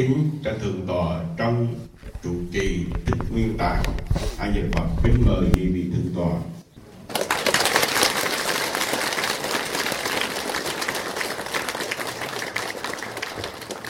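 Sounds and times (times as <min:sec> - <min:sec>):
speech: 0:00.0 - 0:06.5
audience applause at a Buddhist monastery seal handover ceremony: 0:07.1 - 0:13.8.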